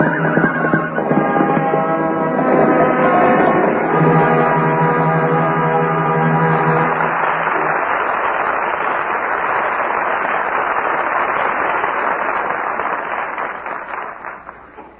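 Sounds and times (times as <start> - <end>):
audience applause: 0.0 - 14.9.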